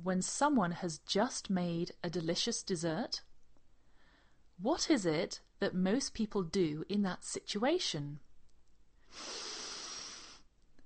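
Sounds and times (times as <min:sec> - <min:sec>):
speech: 0:00.0 - 0:03.3, 0:04.6 - 0:08.3, 0:09.1 - 0:09.4
person sniffing: 0:09.1 - 0:10.5.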